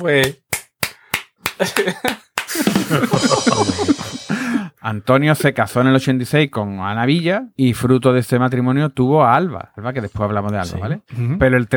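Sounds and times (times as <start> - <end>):
speech: 0.0 - 0.4, 1.6 - 11.7
applause: 0.2 - 2.7
laughter: 1.6 - 4.6.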